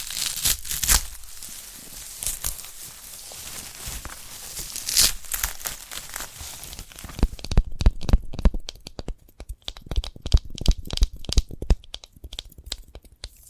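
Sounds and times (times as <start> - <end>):
sprouted coconut rustling, scraping and crinkling: 0.0 - 7.5
sprouted coconut sharp taps and clicks: 7.2 - 13.4.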